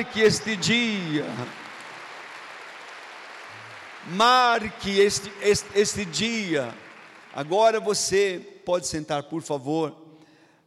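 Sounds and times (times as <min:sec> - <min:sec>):
speech: 0:00.0 - 0:01.6, 0:04.0 - 0:10.0
audience applause: 0:00.0 - 0:07.9.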